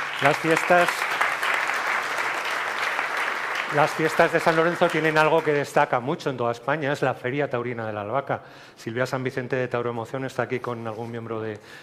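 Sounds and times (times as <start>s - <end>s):
audience applause: 0.0s - 5.8s
speech: 0.2s - 1.1s, 3.7s - 11.8s.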